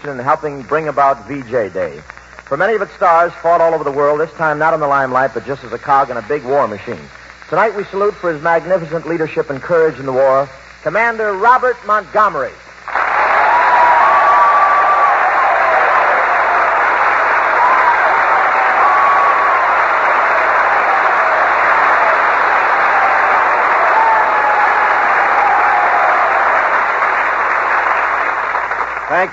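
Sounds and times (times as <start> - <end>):
speech: 0.0 - 12.6
audience applause: 12.9 - 29.3
faint cheers or whistles: 12.9 - 29.3.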